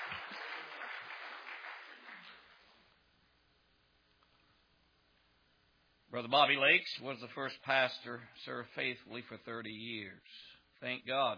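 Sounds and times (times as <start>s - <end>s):
crowd applauding: 0.0s - 2.7s
speech: 6.2s - 11.3s.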